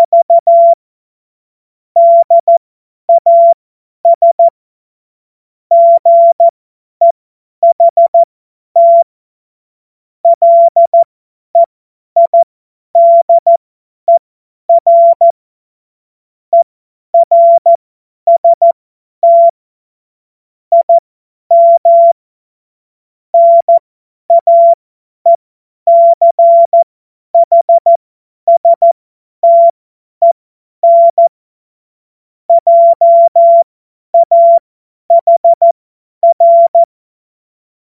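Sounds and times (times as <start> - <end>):
morse code beeps: 0.0 - 0.8, 2.0 - 4.5, 5.7 - 9.1, 10.3 - 15.4, 16.5 - 19.6, 20.7 - 22.2, 23.4 - 31.3, 32.5 - 36.9.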